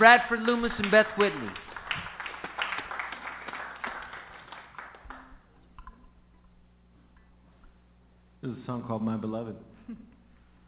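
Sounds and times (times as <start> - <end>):
speech: 0.0 - 2.1, 8.4 - 10.1
audience applause welcoming a folk duo from Seattle, Washington: 0.0 - 5.3.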